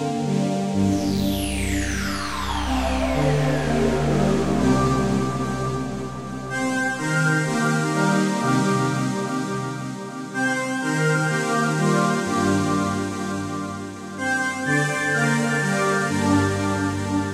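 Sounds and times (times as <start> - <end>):
music from noise: 0.2 - 17.3.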